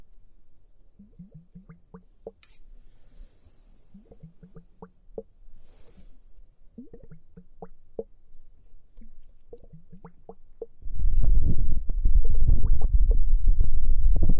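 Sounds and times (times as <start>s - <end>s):
foamy bubbles from an hourglass popping: 4.0s - 5.3s, 6.8s - 7.7s, 9.0s - 13.3s
low rumble: 10.8s - 14.3s.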